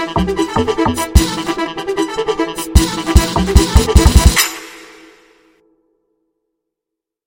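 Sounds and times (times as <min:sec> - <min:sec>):
beat: 0:00.0 - 0:01.7, 0:02.5 - 0:05.1.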